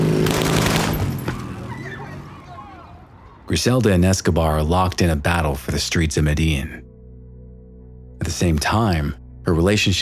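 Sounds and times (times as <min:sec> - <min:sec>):
motorcycle in a drive-by shooting: 0:00.0 - 0:02.9
drive-by gunfire: 0:00.1 - 0:01.5
speech: 0:03.5 - 0:06.9, 0:08.2 - 0:10.0.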